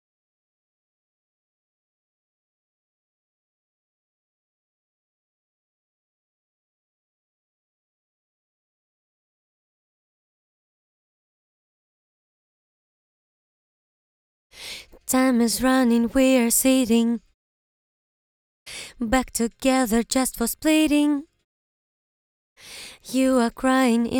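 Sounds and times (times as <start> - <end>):
a cappella vocals singing a verse in English: 14.6 - 17.4, 18.7 - 21.4, 22.6 - 24.1.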